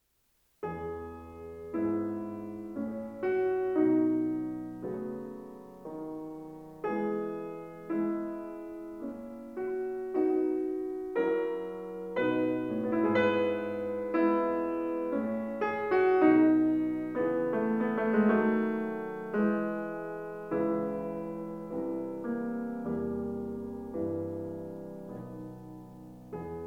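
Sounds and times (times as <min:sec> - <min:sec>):
piano sonata in E major: 0:00.0 - 0:26.6.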